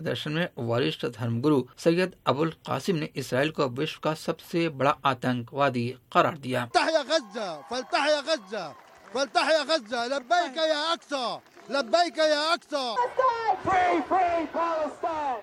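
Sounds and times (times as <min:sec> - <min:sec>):
speech: 0:00.0 - 0:15.4
protesters chanting slogans at a pro-Palestine rally in Melbourne: 0:12.9 - 0:15.4.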